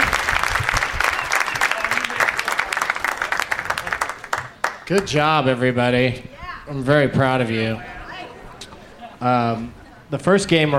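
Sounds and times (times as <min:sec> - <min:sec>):
audience applause: 0:00.0 - 0:05.2
speech: 0:04.9 - 0:07.9, 0:09.2 - 0:10.7.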